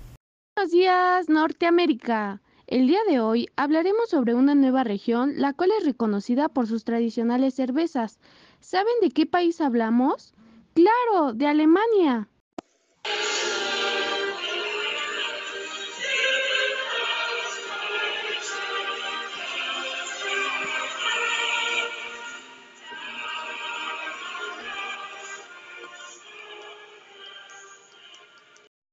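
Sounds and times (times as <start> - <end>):
speech: 0.6 - 12.3, 13.0 - 13.6
national anthem playing: 13.1 - 27.4.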